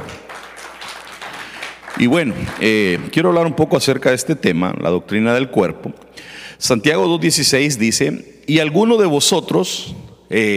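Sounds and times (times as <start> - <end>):
audience applause: 0.0 - 3.2
speech: 2.0 - 10.5.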